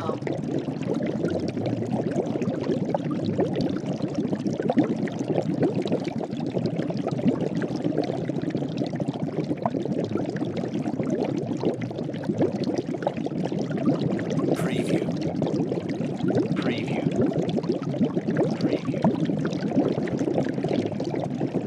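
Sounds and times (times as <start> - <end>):
large cauldron boiling: 0.0 - 21.6.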